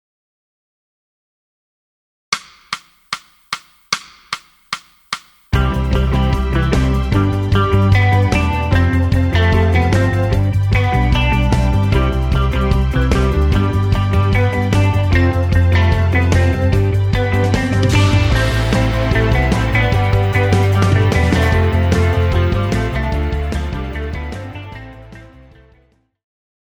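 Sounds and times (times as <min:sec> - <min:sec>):
guitar: 0:05.5 - 0:26.0.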